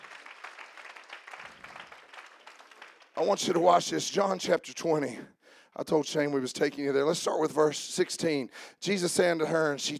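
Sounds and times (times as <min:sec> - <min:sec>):
audience clapping: 0:00.0 - 0:03.6
speech: 0:03.2 - 0:09.9.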